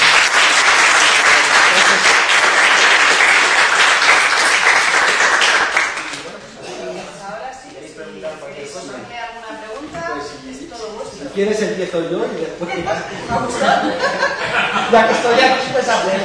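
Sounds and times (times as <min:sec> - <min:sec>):
audience applause: 0:00.0 - 0:06.3
laughter: 0:01.2 - 0:02.3, 0:12.8 - 0:16.2
speech: 0:11.4 - 0:16.2.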